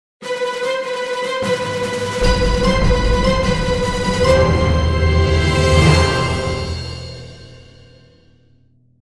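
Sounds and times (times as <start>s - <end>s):
staccato notes: 1.3s - 8.0s.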